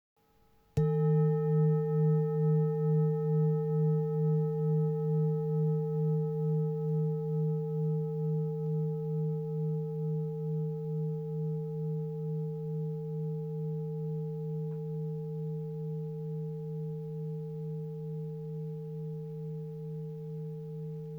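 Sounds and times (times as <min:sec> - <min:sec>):
sacral chakra singing bowl: 0:00.8 - 0:21.1.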